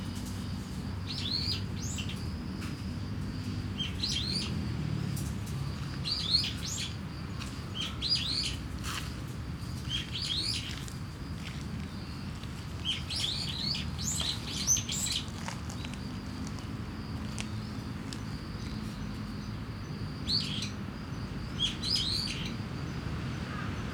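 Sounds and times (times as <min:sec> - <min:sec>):
dull rumble of traffic: 0:00.0 - 0:23.9
starling chirping: 0:05.8 - 0:08.7, 0:09.8 - 0:22.6.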